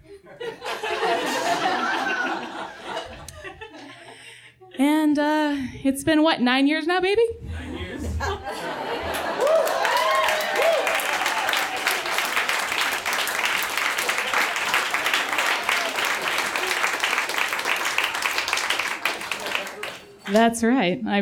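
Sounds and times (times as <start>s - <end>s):
audience laughter: 0.0s - 4.3s, 7.6s - 10.3s
speech: 5.2s - 7.4s, 20.3s - 21.2s
audience applause at a live show: 8.5s - 20.4s.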